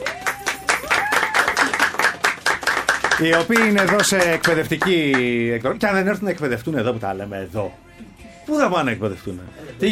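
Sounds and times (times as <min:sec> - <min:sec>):
whistles and cheers: 0:00.0 - 0:01.9
audience applause: 0:00.0 - 0:05.3
speech: 0:03.2 - 0:09.9.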